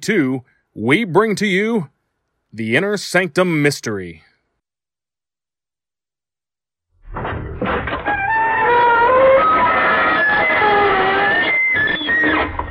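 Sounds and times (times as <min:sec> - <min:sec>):
speech: 0:00.0 - 0:01.9, 0:02.5 - 0:04.3
door creaking: 0:07.0 - 0:12.6.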